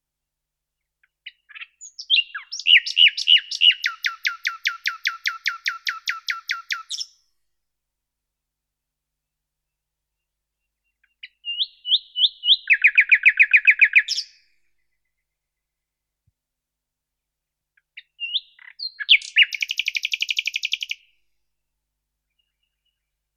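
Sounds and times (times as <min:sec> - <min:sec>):
common nightingale Luscinia megarhynchos singing: 0:01.0 - 0:07.2, 0:10.2 - 0:15.8, 0:17.8 - 0:21.1, 0:22.2 - 0:23.2.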